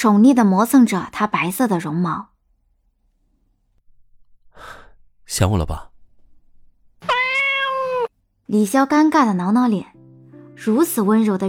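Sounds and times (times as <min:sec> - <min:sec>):
speech: 0:00.0 - 0:02.3, 0:04.6 - 0:05.9, 0:08.5 - 0:09.9, 0:10.6 - 0:11.4
cat meowing: 0:07.0 - 0:08.1.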